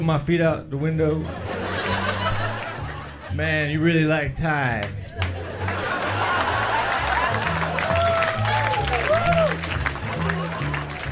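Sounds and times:
speech: 0:00.0 - 0:01.6, 0:03.3 - 0:05.0
audience laughing and clapping: 0:01.1 - 0:03.4, 0:04.8 - 0:11.1.

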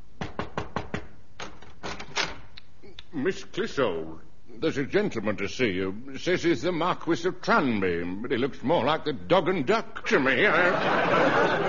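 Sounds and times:
knocking on a wooden door: 0:00.2 - 0:01.1
speech: 0:03.1 - 0:11.6
laughter: 0:10.1 - 0:11.6.

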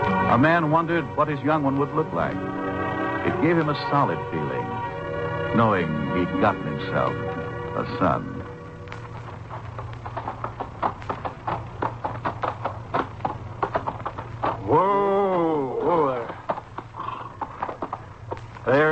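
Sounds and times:
horse hooves clip-clopping: 0:00.0 - 0:18.9
low steady hum: 0:00.0 - 0:18.9
speech: 0:00.3 - 0:02.6, 0:03.2 - 0:04.8, 0:05.5 - 0:08.4
horse whinnying: 0:14.4 - 0:17.9.

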